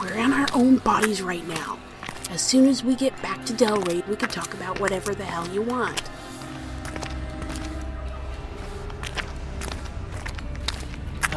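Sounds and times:
footsteps walking: 0.0 - 11.3
speech: 0.2 - 6.2
low rumbling hum: 5.8 - 11.3.

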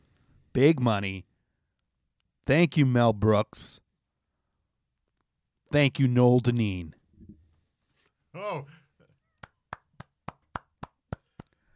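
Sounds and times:
speech: 0.6 - 1.3, 2.5 - 3.8, 5.7 - 7.0, 8.4 - 8.8
hand clapping: 9.4 - 11.6.

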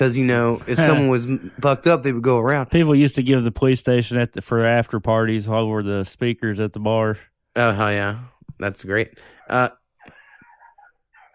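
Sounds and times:
speech: 0.0 - 9.8
stray dogs barking and fighting outside: 10.0 - 11.3.

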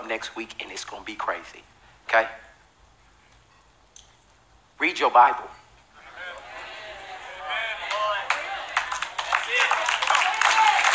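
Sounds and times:
speech: 0.1 - 2.5, 4.8 - 5.6
audience clapping: 6.2 - 10.9.

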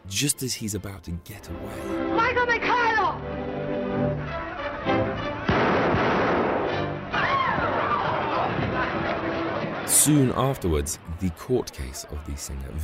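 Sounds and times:
speech: 0.1 - 5.1, 9.9 - 12.8
gunshot: 5.5 - 9.8
crowd babble: 7.5 - 12.8.

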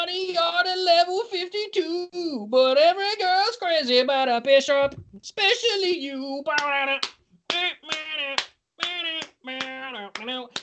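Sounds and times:
speech: 1.0 - 10.6
hand claps: 6.5 - 10.6
tonal vocalizing: 6.5 - 10.6.

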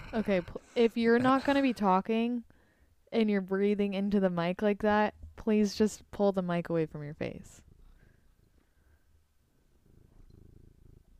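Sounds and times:
cat purring: 0.0 - 2.0, 9.5 - 11.1
speech: 0.1 - 2.5, 3.1 - 7.6.

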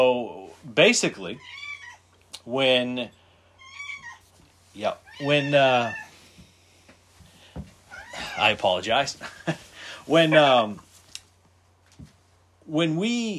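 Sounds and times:
speech: 0.0 - 1.6, 2.4 - 3.2, 4.8 - 6.0, 7.6 - 10.8, 12.7 - 13.3
domestic cat meowing: 1.4 - 2.0, 3.6 - 4.2, 5.0 - 6.1, 7.9 - 8.6.

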